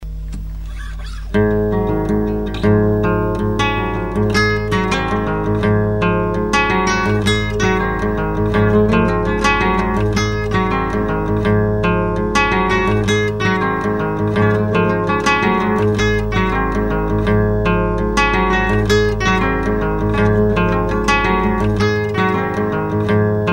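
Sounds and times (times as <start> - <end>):
guitar jam: 0.0 - 23.5.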